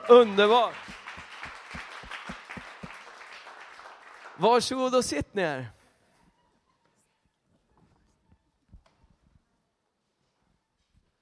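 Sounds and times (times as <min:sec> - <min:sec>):
audience applause: 0:00.0 - 0:05.2
speech: 0:00.1 - 0:01.0, 0:04.4 - 0:05.8.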